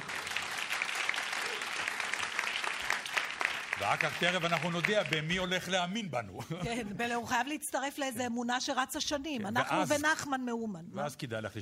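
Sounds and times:
applause: 0.0s - 5.6s
speech: 3.8s - 11.6s.

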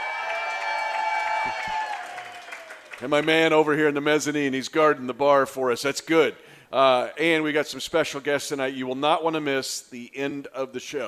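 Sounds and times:
large sellout crowd cheering and clapping at a live show: 0.0s - 3.5s
speech: 3.0s - 11.0s.

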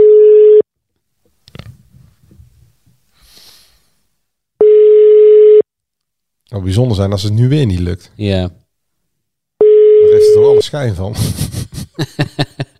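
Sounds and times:
telephone ringing tone while placing a call: 0.0s - 0.6s, 4.6s - 5.6s, 9.6s - 10.6s
speech: 6.6s - 8.6s, 10.4s - 12.5s
laughter: 10.1s - 12.7s.

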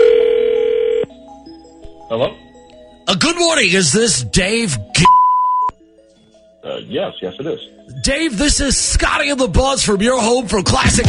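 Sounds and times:
telephone dial tone: 0.0s - 1.1s
speech: 2.1s - 2.4s, 3.1s - 5.2s, 6.8s - 11.0s.

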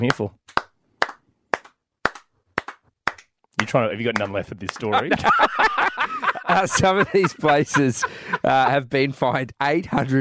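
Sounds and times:
speech: 0.0s - 0.4s, 3.7s - 10.2s
crowd clapping: 0.0s - 7.4s
laughter: 4.7s - 10.2s.

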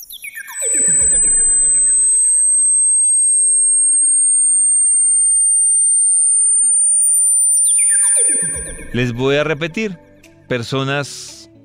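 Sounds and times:
15,000 Hz high-frequency test tone: 0.0s - 9.2s
speech: 8.9s - 11.4s.

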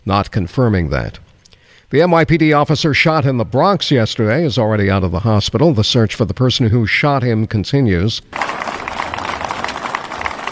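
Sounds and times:
speech: 0.0s - 1.2s, 1.9s - 8.7s
group of people clapping: 8.3s - 10.5s.

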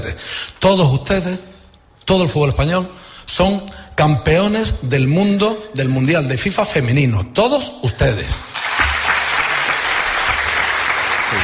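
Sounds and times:
speech: 0.1s - 1.5s, 2.1s - 8.6s
crowd applause: 8.5s - 11.4s.

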